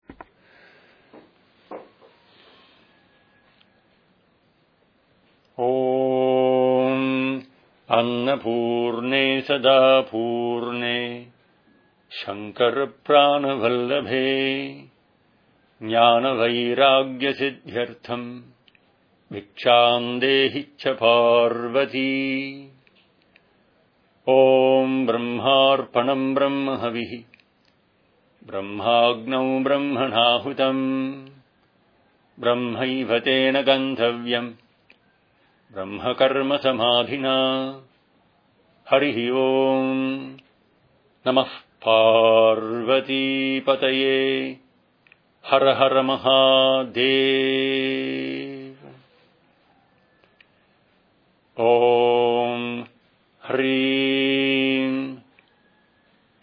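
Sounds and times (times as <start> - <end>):
prayer chanting before eating: 5.6 - 11.4, 12.1 - 15.0, 15.8 - 18.6, 19.3 - 22.8, 24.2 - 27.3, 28.4 - 31.4, 32.4 - 34.6, 35.7 - 37.9, 38.8 - 40.4, 41.2 - 44.6, 45.4 - 49.3, 51.5 - 55.3.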